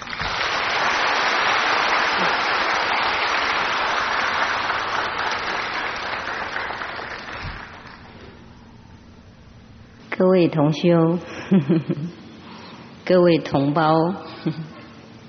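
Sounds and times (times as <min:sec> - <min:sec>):
warm applause: 0:00.0 - 0:08.1
speech: 0:10.2 - 0:12.2, 0:13.1 - 0:14.7.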